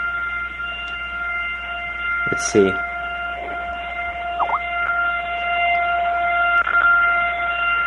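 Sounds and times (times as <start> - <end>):
gym Lunk Alarm blaring: 0.0 - 7.8
speech: 2.3 - 2.9.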